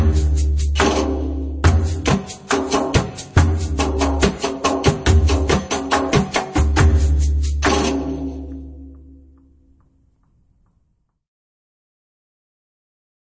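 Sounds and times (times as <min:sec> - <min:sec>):
slow maqsum drum rhythm: 0:00.0 - 0:09.8.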